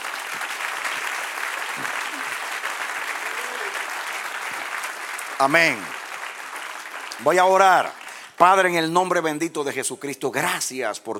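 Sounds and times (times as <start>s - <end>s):
audience applause: 0.0s - 8.7s
speech: 5.4s - 6.0s, 7.2s - 11.1s.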